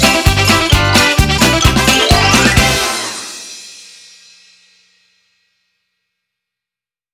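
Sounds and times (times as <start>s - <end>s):
funny running sound: 0.2s - 3.2s.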